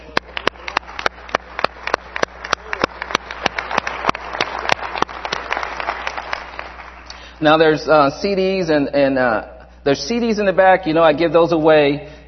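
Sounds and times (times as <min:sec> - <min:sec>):
person clapping: 0:00.0 - 0:07.3
speech: 0:07.4 - 0:12.2.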